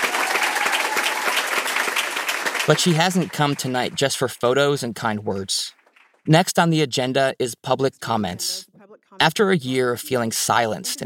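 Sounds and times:
audience clapping at a school board meeting: 0:00.0 - 0:06.4
speech: 0:02.7 - 0:11.0.

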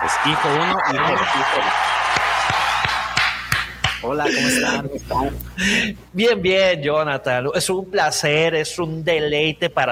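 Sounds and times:
audience applause: 0:00.0 - 0:04.0
speech: 0:00.1 - 0:02.2, 0:04.0 - 0:09.9.

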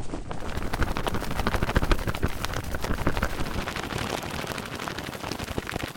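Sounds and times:
cotton polyester blend shirt being flapped, sped up: 0:00.0 - 0:05.9.

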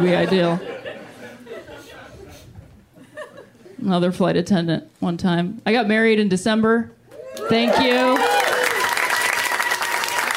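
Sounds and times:
speech: 0:00.0 - 0:00.7, 0:03.8 - 0:08.2
laughter: 0:00.0 - 0:03.8
cheers: 0:07.1 - 0:10.3
audience applause: 0:07.6 - 0:10.3.

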